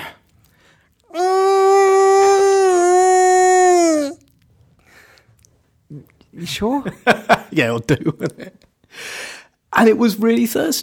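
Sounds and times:
voice imitating a distressed hedgehog wail: 1.1 - 4.3
speech: 6.6 - 8.6, 9.8 - 10.8.

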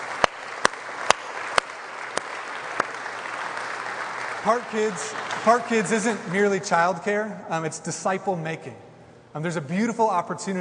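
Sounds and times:
audience applause: 0.0 - 6.3
speech: 4.4 - 10.5.

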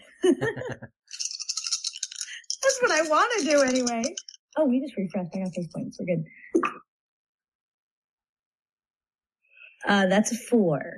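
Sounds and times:
laughter: 0.0 - 0.9
speech: 0.2 - 1.0, 2.8 - 6.9, 9.8 - 10.9
dice being rolled: 1.1 - 4.4.

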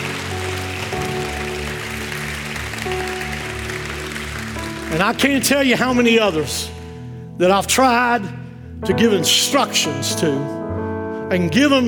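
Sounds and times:
audience clapping hands in praise: 0.0 - 6.6
speech: 4.9 - 6.8, 7.4 - 10.6, 11.3 - 11.8.

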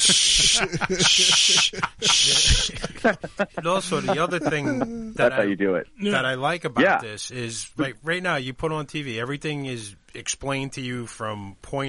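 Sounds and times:
voice imitating exterminator spraying with bright hissing bursts: 0.0 - 2.8
laughter: 0.0 - 5.4
speech: 0.0 - 11.8.

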